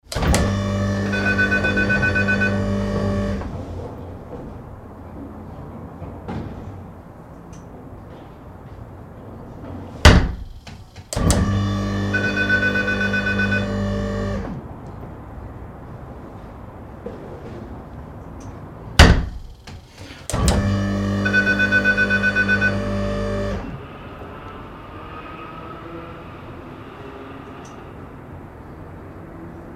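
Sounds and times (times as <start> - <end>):
exterior motorized security door opening and closing: 0.0 - 3.9, 10.0 - 14.7, 19.0 - 24.6
exterior motorized security door alarm: 0.2 - 3.5, 11.3 - 14.4, 20.4 - 23.7.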